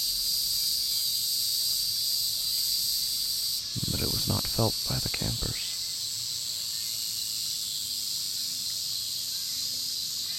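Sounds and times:
hum of locusts: 3.2 - 5.9
speech: 4.0 - 5.7.

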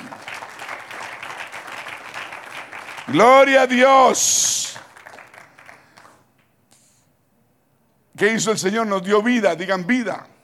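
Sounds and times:
audience applause: 0.0 - 6.2
speech: 3.1 - 4.6, 8.2 - 10.3.

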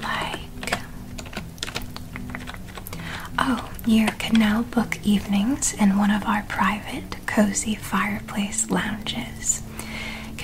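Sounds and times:
keyboard typing: 0.0 - 5.1
low steady hum with a faint tonal drone: 0.0 - 10.4
speech: 3.4 - 9.6.

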